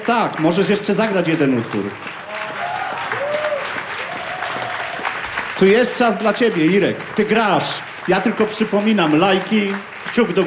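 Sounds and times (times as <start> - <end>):
speech: 0.0 - 2.2, 5.6 - 10.4
audience applause: 0.0 - 10.4.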